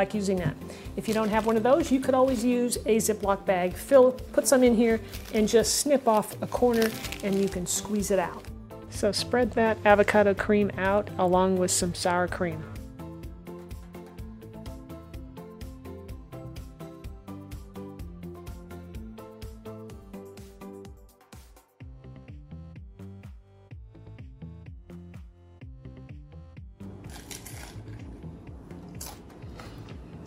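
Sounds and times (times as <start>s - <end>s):
speech: 0.0s - 12.8s
crunch of biting into crunchy food: 27.0s - 28.1s, 28.8s - 30.2s.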